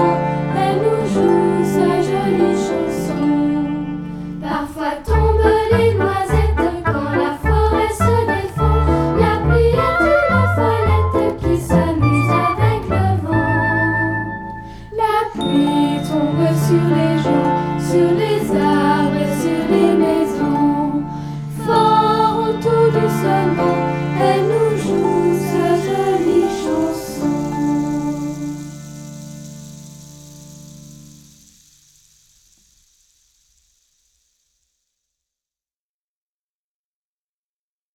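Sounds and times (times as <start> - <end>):
song with vocals: 0.0 - 29.1.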